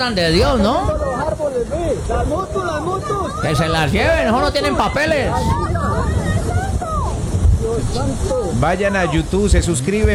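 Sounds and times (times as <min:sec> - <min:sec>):
speech: 0:00.0 - 0:06.1, 0:07.9 - 0:10.1
windstorm wind: 0:00.0 - 0:10.1.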